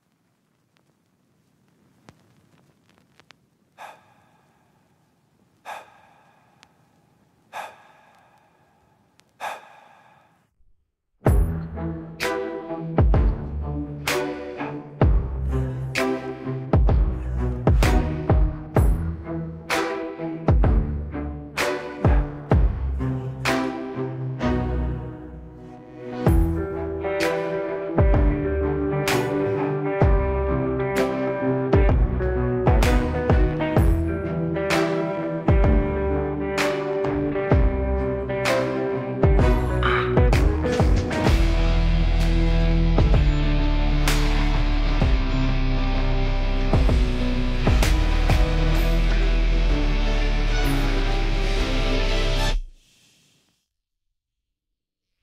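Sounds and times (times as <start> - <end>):
instrumental music: 11.3 - 52.4.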